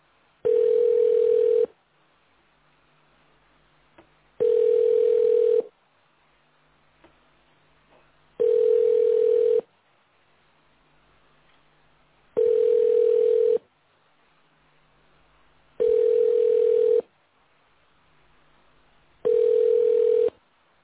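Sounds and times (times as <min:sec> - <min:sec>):
telephone ringback tone: 0:00.4 - 0:01.7, 0:04.4 - 0:05.7, 0:08.4 - 0:09.7, 0:12.4 - 0:13.6, 0:15.8 - 0:17.1, 0:19.2 - 0:20.4.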